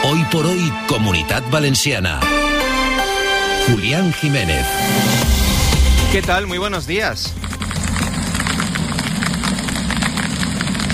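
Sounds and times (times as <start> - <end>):
speech: 0.1 - 3.0, 3.7 - 5.4, 6.1 - 7.4
low rumble: 5.2 - 10.9
golf-ball-sized hail falling: 6.6 - 10.9.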